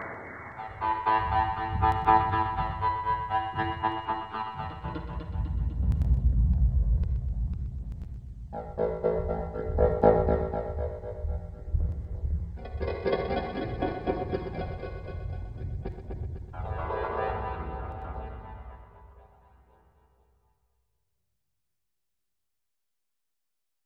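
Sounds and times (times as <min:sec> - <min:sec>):
B flat Locrian music deconstruction: 0:00.6 - 0:07.1, 0:08.0 - 0:19.3.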